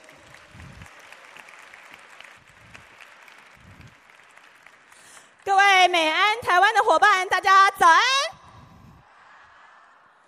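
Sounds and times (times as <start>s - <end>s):
warm audience applause: 0.0s - 5.5s
speech: 5.8s - 8.3s.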